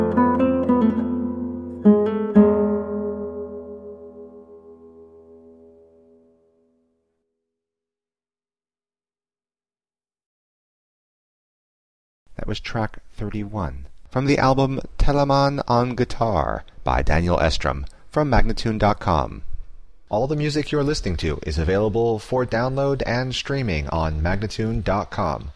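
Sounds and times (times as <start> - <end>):
andante guitar: 0.0 - 6.8
person speaking: 12.3 - 19.5, 20.1 - 25.5.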